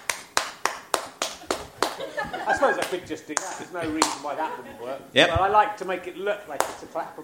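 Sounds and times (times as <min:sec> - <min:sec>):
hand clapping like a clapperboard: 0:00.0 - 0:04.4, 0:06.6 - 0:07.0
laughter: 0:01.3 - 0:05.6
speech: 0:02.2 - 0:07.2.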